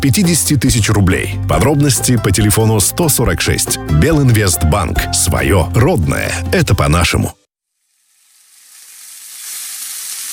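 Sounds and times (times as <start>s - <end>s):
speech: 0.0s - 7.4s
meat sizzling on a grill: 7.7s - 10.3s.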